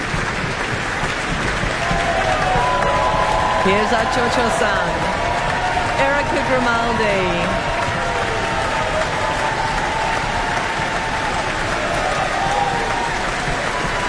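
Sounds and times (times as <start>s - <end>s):
audience cheering in a concert hall: 0.0s - 14.0s
audience stamping in a concert hall: 0.0s - 14.0s
dense steady applause in a concert hall: 0.0s - 14.0s
faint whoops: 1.8s - 6.1s, 7.5s - 14.0s
speech: 3.6s - 5.2s, 6.0s - 7.7s.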